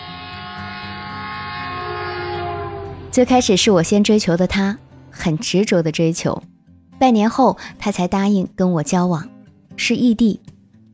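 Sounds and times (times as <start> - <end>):
train rumbling along: 0.2 - 4.8
speech: 3.2 - 10.5.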